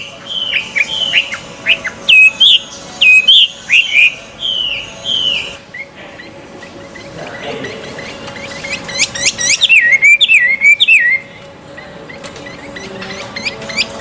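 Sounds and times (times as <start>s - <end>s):
Chinese hwamei singing: 0.0s - 13.9s.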